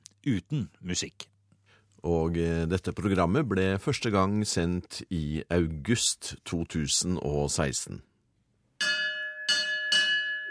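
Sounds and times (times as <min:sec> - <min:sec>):
speech: 0:00.2 - 0:01.3, 0:02.0 - 0:08.1
court bell ringing: 0:08.8 - 0:10.4.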